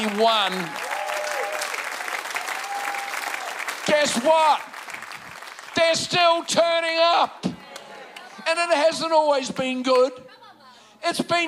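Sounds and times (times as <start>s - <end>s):
congregation applauding in a church to honour a longtime couple: 0.0s - 6.9s
speech: 0.1s - 0.9s, 4.0s - 4.7s, 5.8s - 7.5s, 8.5s - 10.2s, 11.0s - 11.4s.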